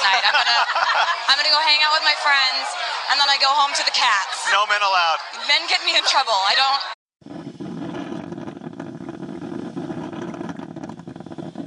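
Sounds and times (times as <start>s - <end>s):
laughter: 0.0s - 7.0s
speech: 0.3s - 7.4s
coffee maker brewing: 7.2s - 11.6s.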